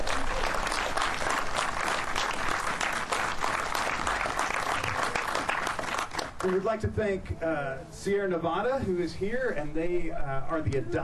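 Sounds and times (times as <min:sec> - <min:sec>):
audience applause: 0:00.0 - 0:06.6
speech: 0:06.4 - 0:11.0.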